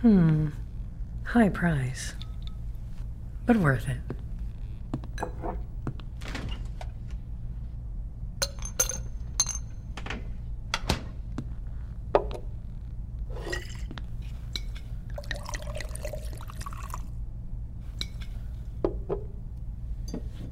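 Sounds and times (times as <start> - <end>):
speech: 0.0 - 0.6, 1.2 - 2.2, 3.5 - 4.2
steady low hum: 0.0 - 20.4
drink poured into a glass: 15.1 - 17.1.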